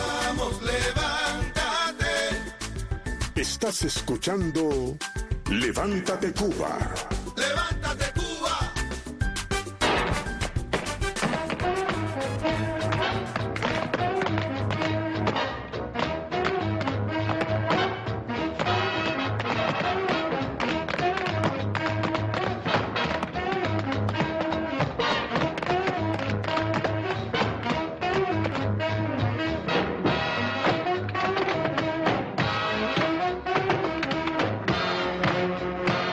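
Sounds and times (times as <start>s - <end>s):
lively instrumental intro music: 0.0s - 36.1s
speech: 3.4s - 7.2s
zapateo foot stomping: 9.8s - 36.1s.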